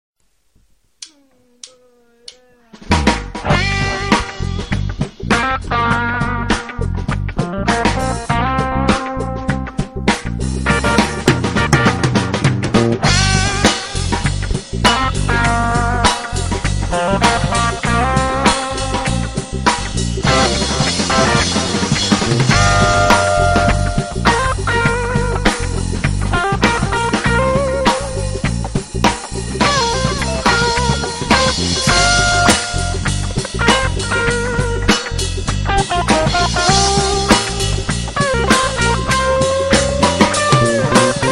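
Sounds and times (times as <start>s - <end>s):
funk music: 1.0s - 41.3s.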